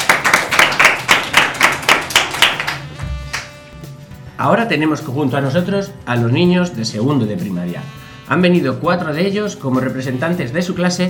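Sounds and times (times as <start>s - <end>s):
children's class applauding: 0.0s - 3.5s
speech: 4.4s - 11.0s.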